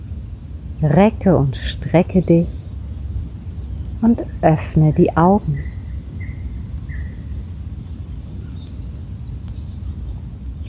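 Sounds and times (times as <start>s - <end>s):
birds chirping in a forest: 0.0s - 10.6s
speech: 0.8s - 2.6s, 4.0s - 5.7s.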